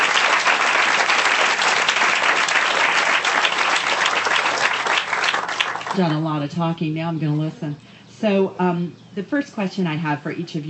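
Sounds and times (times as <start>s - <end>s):
audience applause: 0.0s - 6.2s
speech: 6.0s - 10.6s.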